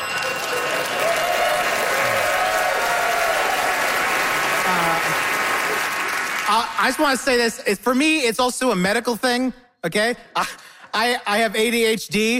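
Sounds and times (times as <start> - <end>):
large crowd clapping and cheering: 0.0 - 7.3
speech: 6.5 - 12.3.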